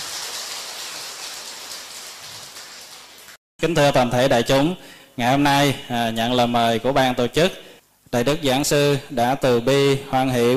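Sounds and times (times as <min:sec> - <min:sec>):
audience round of applause: 0:00.0 - 0:03.4
speech: 0:03.6 - 0:10.5.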